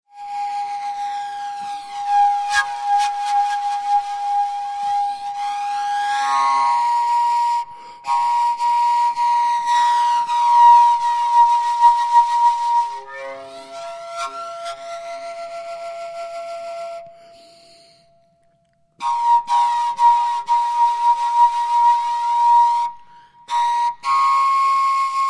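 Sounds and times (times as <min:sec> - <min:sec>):
jungle flutes playing: 0:00.2 - 0:18.2, 0:19.0 - 0:25.2.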